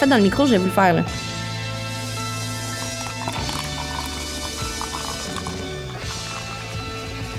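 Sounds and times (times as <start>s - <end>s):
speech: 0.0s - 1.3s
fizzing bubbles of sparkling drink: 2.6s - 6.8s.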